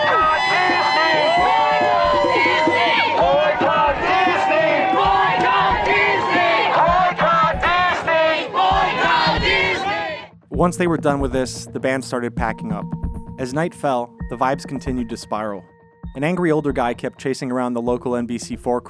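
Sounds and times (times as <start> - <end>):
crowd chanting at a concert: 0.0 - 10.3
speech: 10.6 - 18.8.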